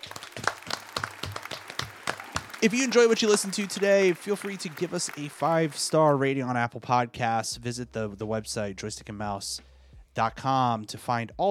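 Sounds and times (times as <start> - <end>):
hand clapping: 0.0 - 6.2
speech: 2.6 - 11.4.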